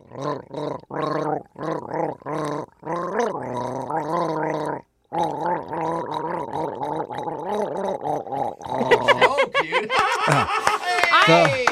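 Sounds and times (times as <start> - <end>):
person gargling a Christmas tune with Bang energy drink: 0.0 - 9.3
laughter: 8.8 - 11.6.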